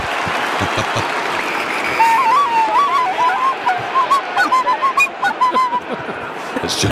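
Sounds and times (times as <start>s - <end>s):
laughter: 0.0s - 1.4s, 2.4s - 6.9s
crowd noise and clapping: 0.0s - 6.9s
tin whistle playing a tune: 1.4s - 5.9s.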